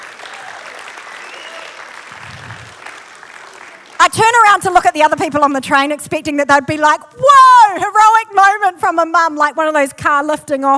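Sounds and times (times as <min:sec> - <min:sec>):
applause sound effect: 0:00.0 - 0:04.2
speech: 0:04.1 - 0:10.7.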